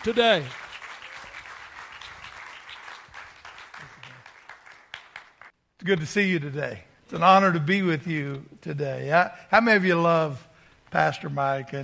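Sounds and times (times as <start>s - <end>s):
speech: 0.0s - 0.6s, 5.8s - 11.8s
audience applause: 0.0s - 5.5s.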